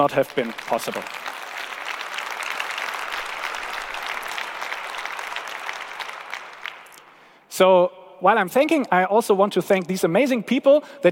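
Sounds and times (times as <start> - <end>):
speech: 0.0 - 1.3, 7.6 - 11.0
audience round of applause: 0.0 - 7.2.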